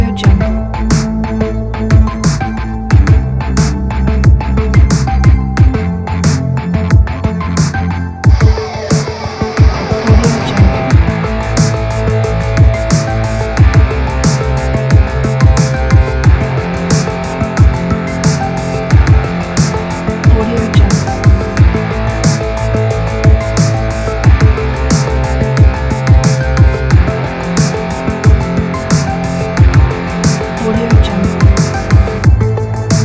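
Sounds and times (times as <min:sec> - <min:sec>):
80s synth wave music: 0:00.0 - 0:33.0.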